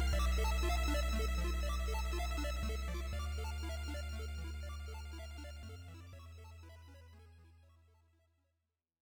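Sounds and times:
dungeon synth arpeggio: 0.0s - 6.8s.

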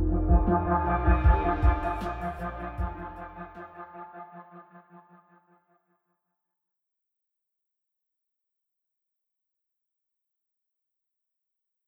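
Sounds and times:
hypnotic nighttime beat: 0.0s - 3.7s.

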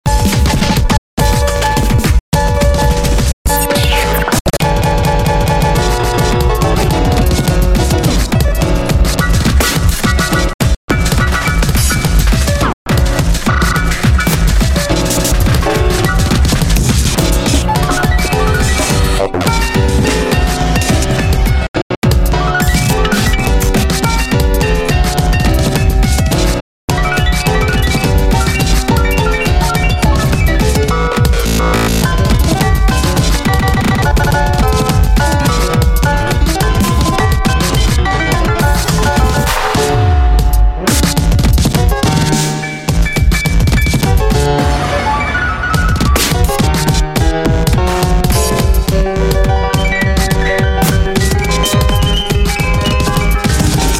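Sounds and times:
bleak piano music: 0.0s - 53.9s.

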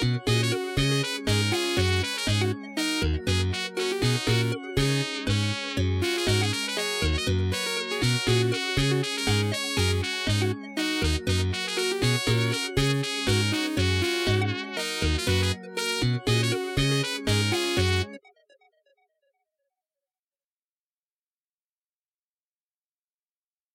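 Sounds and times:
Korg M01D synthesizer: 0.0s - 18.8s.

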